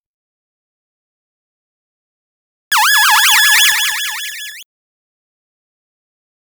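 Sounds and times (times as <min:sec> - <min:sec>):
space sound effects: 0:02.8 - 0:04.6.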